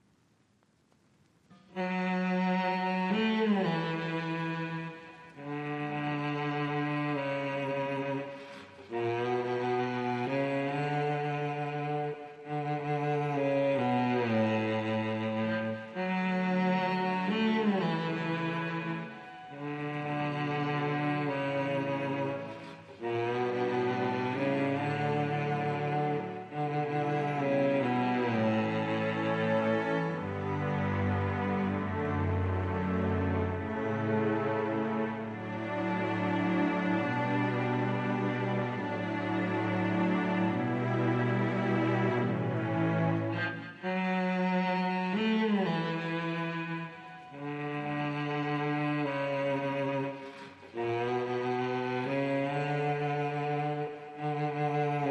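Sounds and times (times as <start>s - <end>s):
strings: 1.5s - 55.0s.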